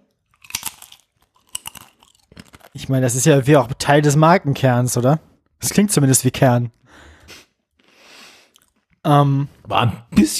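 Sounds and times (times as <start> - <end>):
person chewing food into the microphone: 0.1 - 2.8, 7.7 - 9.0
speech: 2.8 - 7.4, 9.0 - 10.3.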